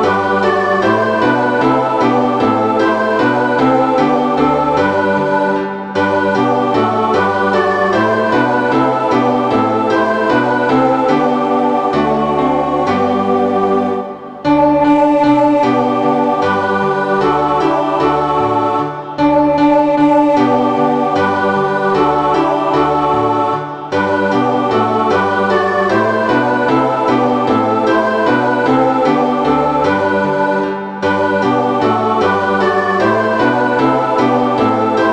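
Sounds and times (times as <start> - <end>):
piano accompaniment for SSA choir: 0.0 - 35.1.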